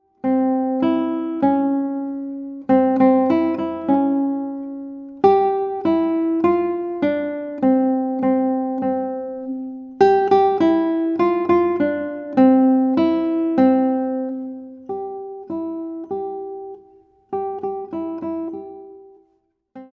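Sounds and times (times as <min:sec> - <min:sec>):
guitar: 0:00.0 - 0:19.9.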